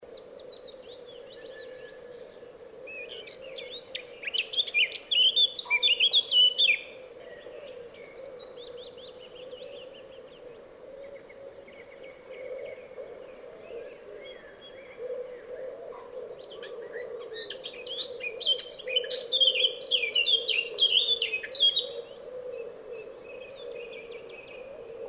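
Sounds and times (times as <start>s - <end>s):
bird: 0.0s - 25.0s.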